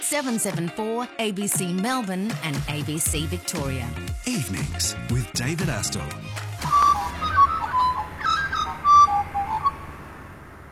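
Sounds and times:
speech: 0:00.1 - 0:06.5
whistled bird calls: 0:06.6 - 0:10.0.

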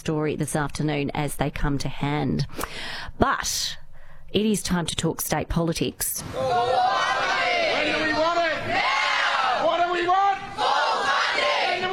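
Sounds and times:
speech: 0:00.0 - 0:07.1
striking teachers and staff from Victorian public schools chanting at a protest: 0:06.2 - 0:11.9.

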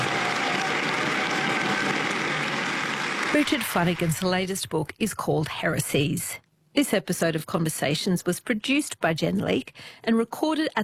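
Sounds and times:
theatre audience applause: 0:00.0 - 0:04.4
speech: 0:03.4 - 0:10.8.

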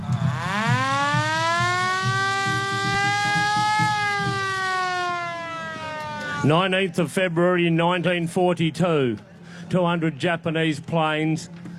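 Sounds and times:
air raid war siren wailing: 0:00.1 - 0:06.5
speech: 0:06.4 - 0:11.6.

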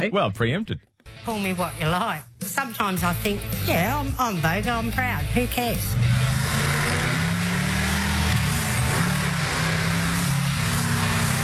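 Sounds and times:
speech: 0:00.0 - 0:06.3
car engine revving: 0:03.8 - 0:11.4.

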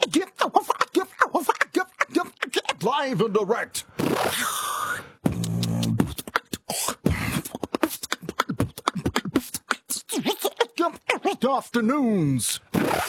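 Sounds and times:
beatboxing vocal percussion: 0:00.0 - 0:11.6, 0:12.5 - 0:13.0
speech: 0:03.0 - 0:04.6, 0:11.4 - 0:13.0.

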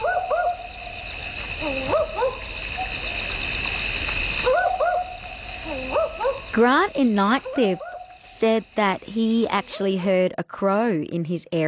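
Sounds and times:
barking owl calls: 0:00.0 - 0:00.7, 0:01.6 - 0:03.1, 0:04.4 - 0:06.6
steady hiss of insects or running water: 0:00.0 - 0:11.0
speech: 0:06.6 - 0:11.6.

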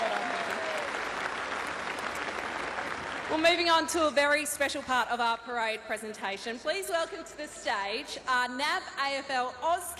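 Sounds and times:
applause at a football parade presentation: 0:00.0 - 0:03.9
speech: 0:03.3 - 0:09.9.

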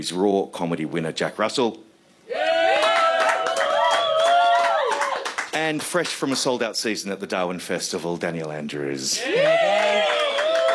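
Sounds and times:
speech: 0:00.0 - 0:02.4, 0:05.6 - 0:09.7
loud sustained whoops and cheering voices: 0:02.3 - 0:05.4, 0:09.2 - 0:10.7
audience applause: 0:02.6 - 0:06.2, 0:09.3 - 0:10.7.

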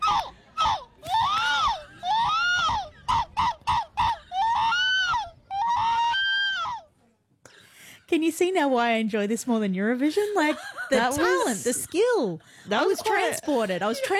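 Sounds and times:
person imitating seagull calls: 0:00.0 - 0:06.5
speech: 0:08.2 - 0:14.1
laughter: 0:10.2 - 0:14.1.

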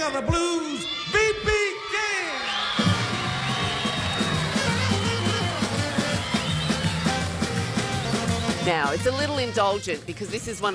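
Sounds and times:
speech: 0:00.0 - 0:01.1, 0:08.7 - 0:10.7
live concert audience cheering: 0:00.1 - 0:08.8
live concert audience applause: 0:01.9 - 0:08.7.

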